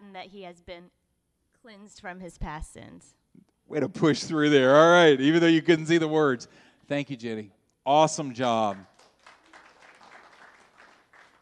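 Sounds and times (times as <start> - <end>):
speech: 0.2 - 1.0, 1.6 - 8.9
weak scattered audience applause: 8.5 - 11.4.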